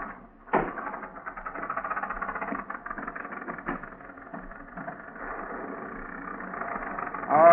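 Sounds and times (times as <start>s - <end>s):
overheating car motor running with a slipping fan belt during a muddy storm: 0.0s - 7.5s.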